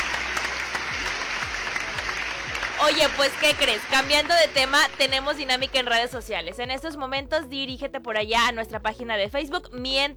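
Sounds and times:
applause: 0:00.0 - 0:06.0
speech: 0:02.8 - 0:10.1.

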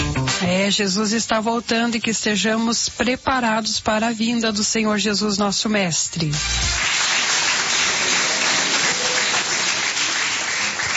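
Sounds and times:
speech: 0:00.4 - 0:06.8
audience clapping: 0:06.4 - 0:10.9.

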